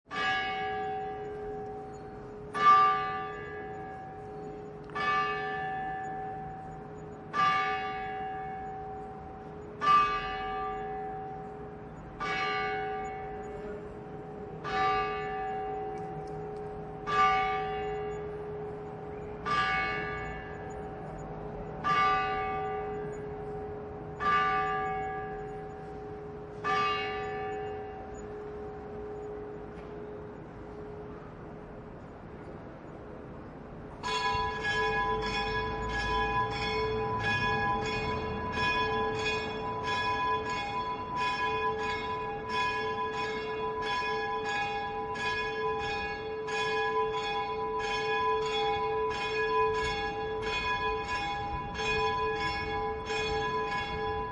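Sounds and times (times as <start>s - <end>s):
church bells in Prague: 0.1s - 33.1s, 33.7s - 54.3s.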